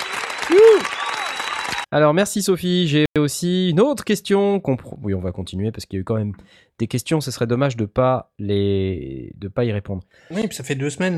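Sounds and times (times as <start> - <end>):
applause: 0.0 - 1.9
speech: 0.5 - 1.0, 1.9 - 11.1.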